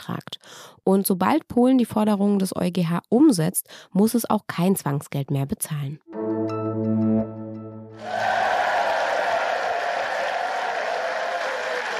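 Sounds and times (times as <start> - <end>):
speech: 0.0 - 6.0
brief sustained musical tone: 6.1 - 8.1
large crowd applause in a state parliament: 8.0 - 11.9.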